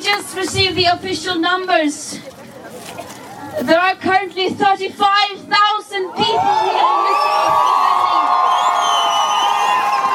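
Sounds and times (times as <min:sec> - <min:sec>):
speech: 0:00.1 - 0:02.4, 0:03.5 - 0:07.7
crowd cheering at a climate rally: 0:06.0 - 0:10.1.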